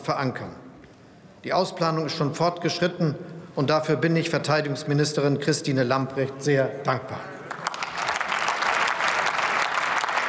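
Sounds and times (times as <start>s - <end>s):
speech: 0.0s - 0.6s, 1.4s - 7.3s
parliament applauding: 7.5s - 10.2s.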